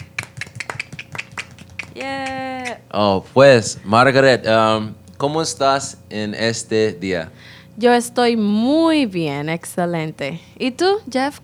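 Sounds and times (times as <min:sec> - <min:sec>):
crowd hand clapping applause: 0:00.0 - 0:02.8
speech: 0:02.0 - 0:11.4.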